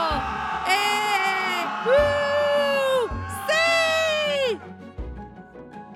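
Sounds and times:
army shouting excitedly: 0.0s - 4.6s.

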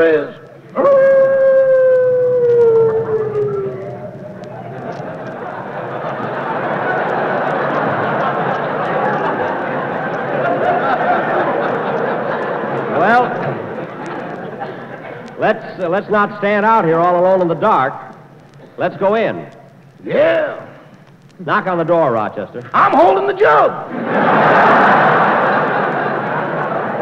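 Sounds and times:
speech: 0.0s - 1.1s, 15.8s - 18.0s, 18.8s - 20.6s, 21.4s - 24.8s
howling night wind: 0.8s - 7.6s
laughter: 2.0s - 15.6s, 23.9s - 27.0s.

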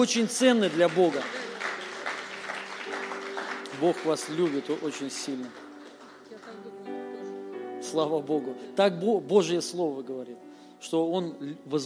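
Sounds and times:
speech: 0.0s - 1.5s, 3.8s - 5.6s, 7.8s - 11.8s
church audience applause: 0.0s - 7.0s.

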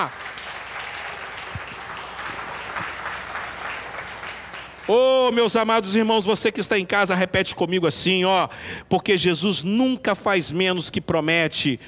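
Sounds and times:
speech: 0.0s - 0.2s, 4.9s - 11.8s
audience applauding: 0.0s - 5.4s.

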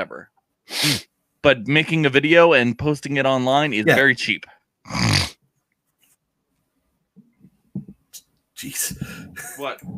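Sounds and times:
speech: 0.0s - 5.2s, 8.6s - 9.9s
person inhaling loudly into a microphone: 8.9s - 9.4s.

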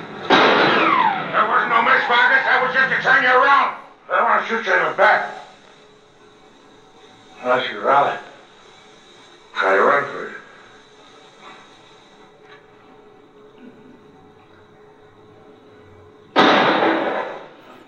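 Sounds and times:
gunshot in a film scene where a man is shot in the back: 0.3s - 1.4s, 16.3s - 17.6s
dialogue: 0.9s - 16.4s.

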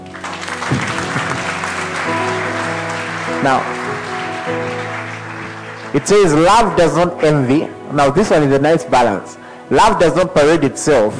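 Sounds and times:
crowd applauding: 0.0s - 7.2s
speech: 3.4s - 3.8s, 5.9s - 11.1s.

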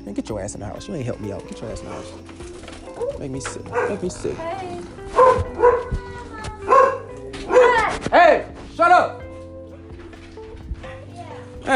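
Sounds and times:
speech: 0.1s - 6.0s, 8.8s - 9.2s
quiet dog yip: 1.7s - 8.1s
dog barking: 2.9s - 8.5s.

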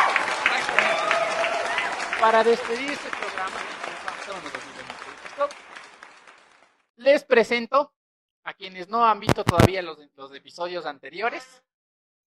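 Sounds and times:
audience applause: 0.0s - 6.8s
speech: 2.2s - 5.6s, 7.0s - 11.7s.

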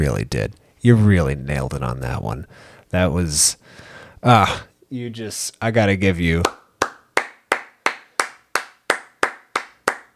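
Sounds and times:
speech: 0.0s - 6.6s
hand clapping: 6.4s - 10.1s.

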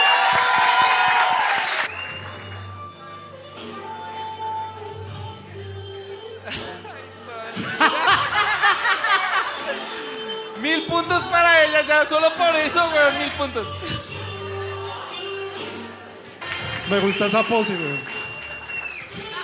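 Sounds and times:
audience applause: 0.0s - 2.6s, 16.4s - 19.4s
laughter: 6.4s - 10.6s
speech: 11.0s - 14.0s, 16.9s - 18.1s.

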